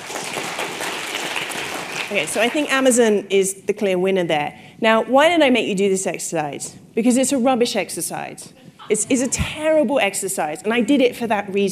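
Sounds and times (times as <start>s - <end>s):
audience clapping: 0.0s - 2.8s
speech: 2.1s - 11.6s.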